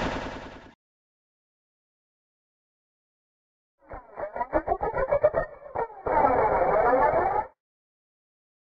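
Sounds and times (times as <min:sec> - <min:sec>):
sci-fi mechanical sounds: 0:03.8 - 0:07.6.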